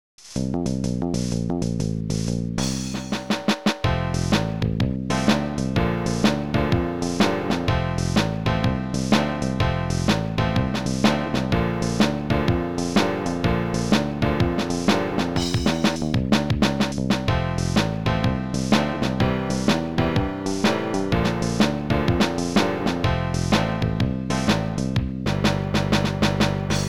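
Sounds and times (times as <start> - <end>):
blues music: 0.5 - 26.8.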